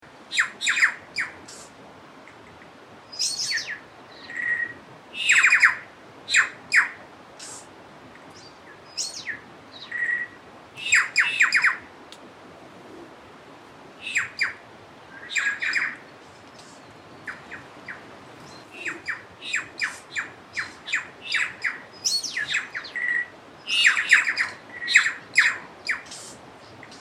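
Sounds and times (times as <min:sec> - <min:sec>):
bird singing: 0:03.1 - 0:07.6, 0:08.3 - 0:11.8, 0:14.0 - 0:14.6, 0:15.2 - 0:26.9.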